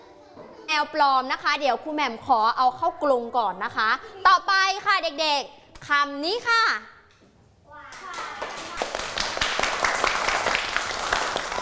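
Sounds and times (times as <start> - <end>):
speech: 0.8 - 6.9
small group of children clapping: 7.9 - 11.6.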